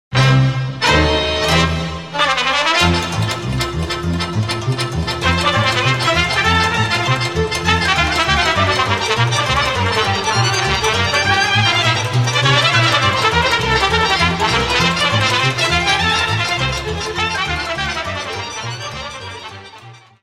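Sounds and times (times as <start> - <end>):
Romanian sirba folk dance music: 0.1 - 20.2.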